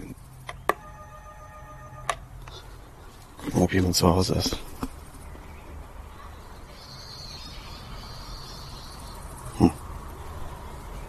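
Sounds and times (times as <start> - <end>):
doorbell ringing: 0.8 - 2.2
speech: 3.6 - 4.8.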